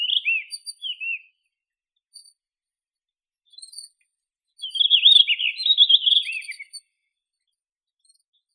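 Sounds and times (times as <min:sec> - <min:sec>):
Blue rock thrush singing: 0:00.0 - 0:01.2, 0:04.6 - 0:06.7.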